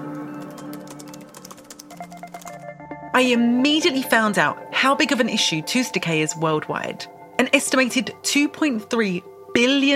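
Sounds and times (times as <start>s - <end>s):
quiet steady tonal background: 0.0s - 9.9s
typing on a computer keyboard for a Google search: 0.2s - 2.7s
speech: 3.2s - 9.9s.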